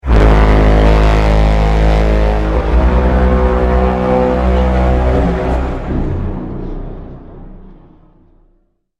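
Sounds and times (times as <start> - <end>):
broken horn with reverb: 0.0 - 8.6.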